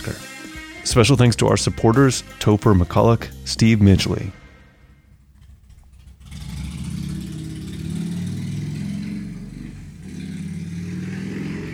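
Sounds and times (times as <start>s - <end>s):
speech: 0.0s - 0.3s, 0.9s - 4.4s
loud motorcycle engine revving: 5.1s - 11.7s.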